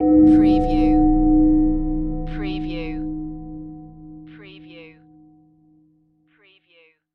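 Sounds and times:
metal hit: 0.0 - 4.3.

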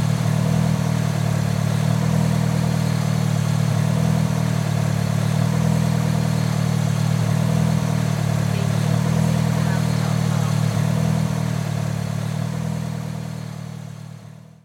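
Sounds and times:
Mitsubishi Eclipse engine idling: 0.0 - 14.6.

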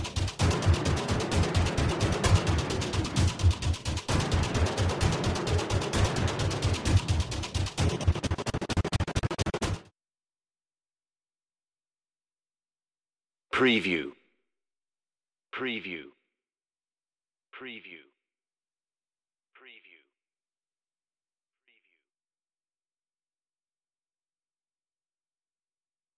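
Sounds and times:
drums: 0.0 - 9.9.

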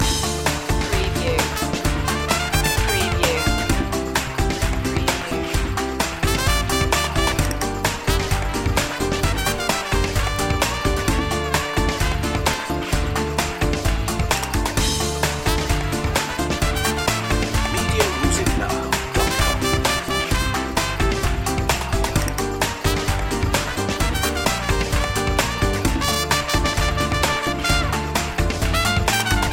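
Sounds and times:
celebration music loop: 0.0 - 29.5.

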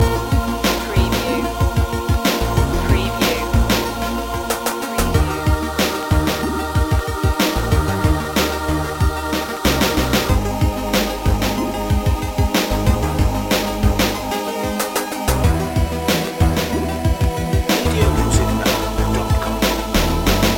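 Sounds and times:
retro video game music loop: 0.0 - 20.5.

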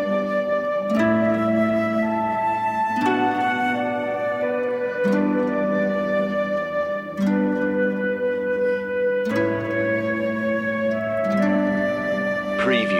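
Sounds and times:
flute: 0.0 - 12.9
harp: 0.0 - 12.9.

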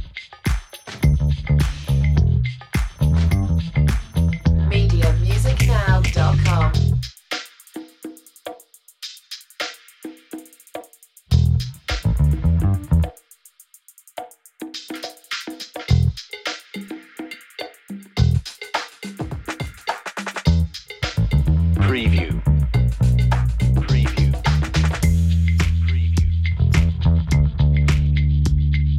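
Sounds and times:
funky groovy bass: 0.0 - 0.2, 1.0 - 7.1, 11.3 - 13.2, 15.9 - 16.2, 18.2 - 18.5, 20.4 - 28.9
funky groovy drums: 0.0 - 28.9.

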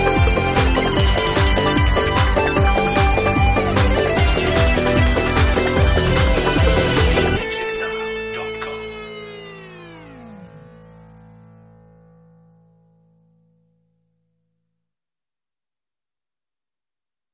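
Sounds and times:
lead guitar: 0.0 - 12.9.

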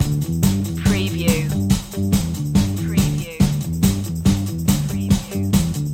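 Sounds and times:
rhythm loop: 0.0 - 0.2, 0.8 - 5.8.

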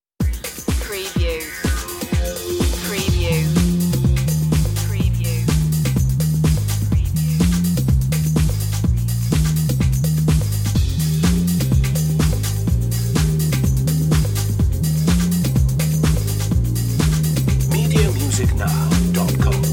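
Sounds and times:
minimal trip music: 0.6 - 19.7.

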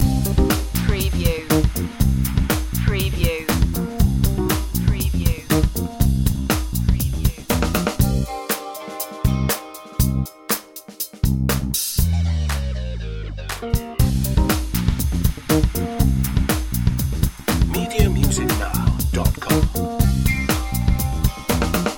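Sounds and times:
funk wah guitar loop: 0.0 - 21.9.

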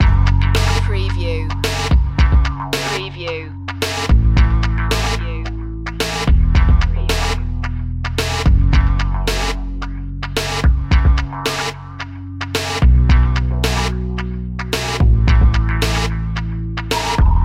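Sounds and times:
1980s cop show funk music loop: 0.0 - 17.4.

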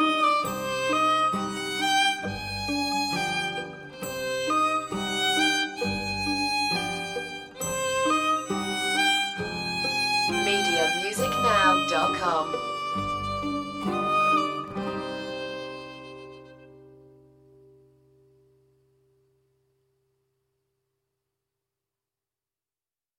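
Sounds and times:
solo violin: 0.0 - 16.9
guitar: 0.0 - 19.9.

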